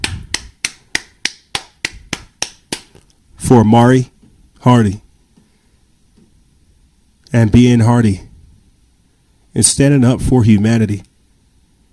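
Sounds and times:
hands clapping: 0:00.0 - 0:03.1
speech: 0:03.5 - 0:05.0, 0:07.3 - 0:08.3, 0:09.6 - 0:11.1.

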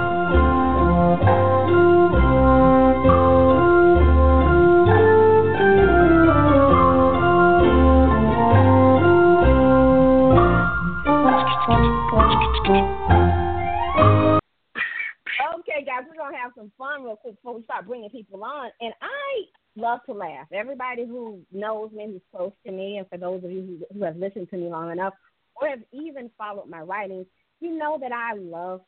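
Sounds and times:
quiz show theme music: 0:00.0 - 0:14.4
speech: 0:20.1 - 0:28.8.

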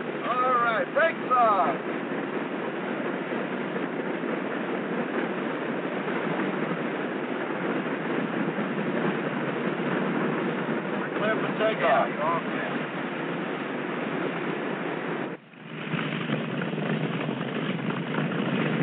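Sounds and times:
airliner jet engines powering up for takeoff: 0:00.0 - 0:18.8.

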